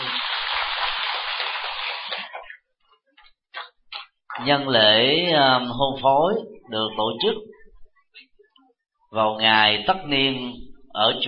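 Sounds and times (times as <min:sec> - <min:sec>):
audience applause at wedding: 0:00.0 - 0:02.5
speech: 0:04.4 - 0:07.5, 0:09.1 - 0:11.2.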